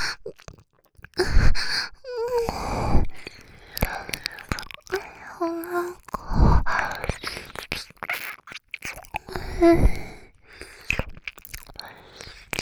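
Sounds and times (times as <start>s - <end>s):
ear licking: 0.2s - 12.6s.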